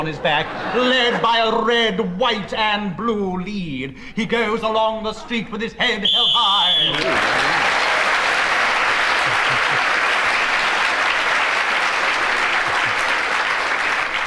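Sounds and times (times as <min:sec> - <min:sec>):
laughter: 0:00.0 - 0:02.1, 0:06.9 - 0:11.0, 0:12.3 - 0:13.4
speech: 0:00.0 - 0:07.7
loud audience applause during a comedy panel game: 0:06.7 - 0:14.2.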